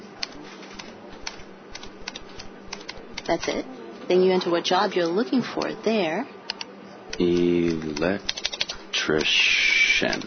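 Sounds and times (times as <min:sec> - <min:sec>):
low steady hum: 0:00.0 - 0:10.2
computer keyboard typing a website address: 0:00.2 - 0:03.7, 0:06.5 - 0:09.4
speech: 0:03.3 - 0:06.4, 0:07.2 - 0:08.4, 0:09.0 - 0:10.2.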